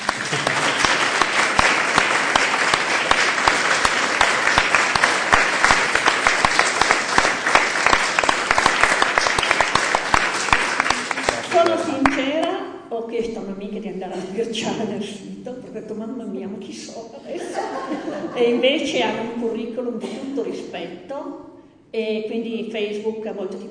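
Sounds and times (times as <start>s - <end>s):
audience applause: 0.0s - 12.2s
speech: 13.8s - 23.6s
laughter: 17.3s - 19.1s.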